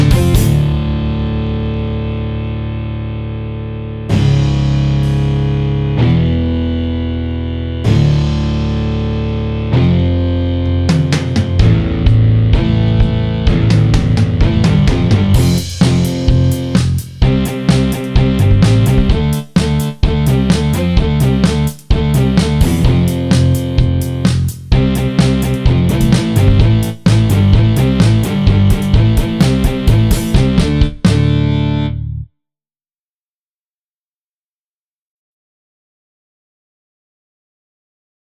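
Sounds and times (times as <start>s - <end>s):
drums: 0.0s - 1.8s, 4.1s - 7.0s, 7.8s - 32.0s
bass: 0.0s - 32.3s
guitar: 0.0s - 32.3s.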